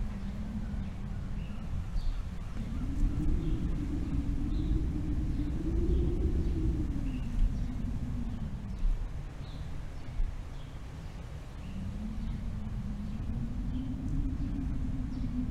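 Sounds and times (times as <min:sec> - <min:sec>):
wind across open country: 0:00.0 - 0:15.5.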